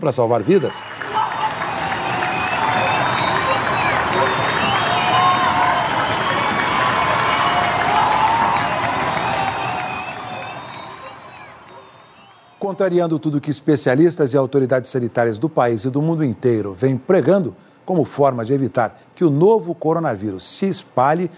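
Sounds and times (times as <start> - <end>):
speech: 0.0 - 1.2, 12.6 - 21.3
people applauding from windows: 0.1 - 12.9
cheering and shouted voices: 0.5 - 12.7.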